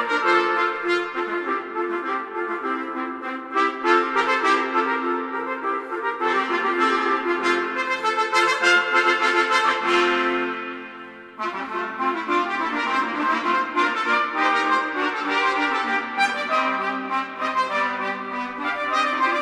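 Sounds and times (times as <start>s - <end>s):
trumpet playing a heroic march: 0.0s - 19.4s.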